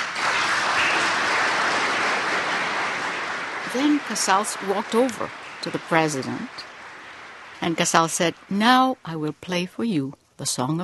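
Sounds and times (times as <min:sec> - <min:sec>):
explosive applause from concert audience: 0:00.0 - 0:08.1
speech: 0:03.8 - 0:06.7, 0:07.6 - 0:10.8.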